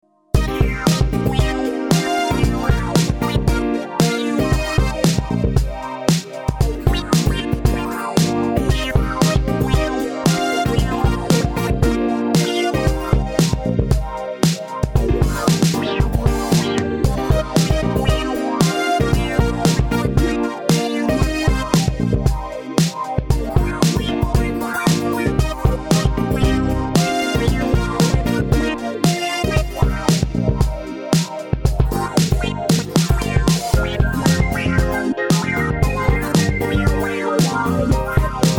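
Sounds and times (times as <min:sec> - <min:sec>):
funk music: 0:00.4 - 0:38.5.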